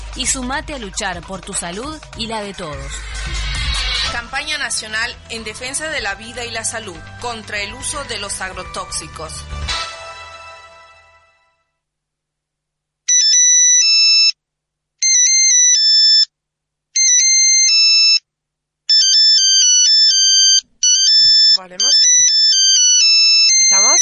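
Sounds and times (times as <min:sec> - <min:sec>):
speech: 0:00.2 - 0:03.5, 0:04.1 - 0:09.6, 0:21.6 - 0:22.0
mobile phone ringtone: 0:13.1 - 0:14.4, 0:15.0 - 0:16.3, 0:17.0 - 0:18.2, 0:18.9 - 0:24.0.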